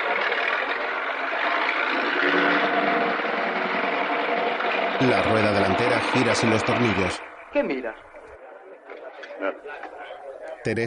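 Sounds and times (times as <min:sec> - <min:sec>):
competitor's truck engine driving away: 0:00.0 - 0:08.4
speech: 0:05.0 - 0:08.1, 0:09.4 - 0:10.0, 0:10.6 - 0:10.8.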